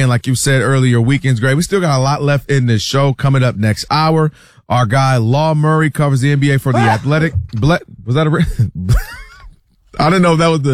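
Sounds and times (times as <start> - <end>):
speech: 0.0 - 9.2, 10.0 - 10.7
loud throaty sneeze: 6.7 - 7.1.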